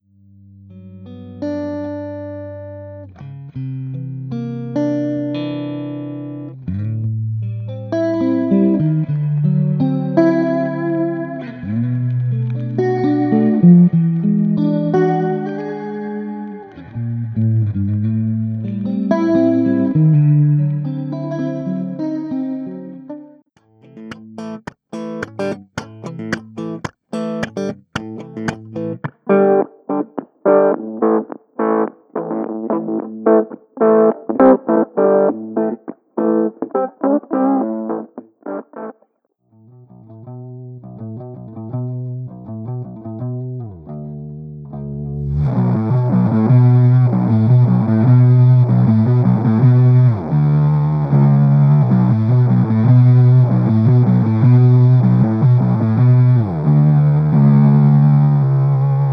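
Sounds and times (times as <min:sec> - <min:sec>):
guitars: 0:00.5 - 0:59.1.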